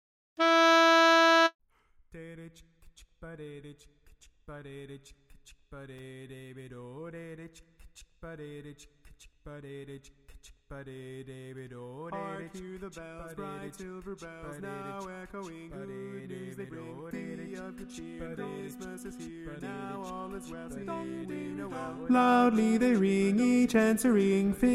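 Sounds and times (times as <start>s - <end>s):
lead melody: 0.4s - 1.5s
grand chorus singing: 12.1s - 24.1s.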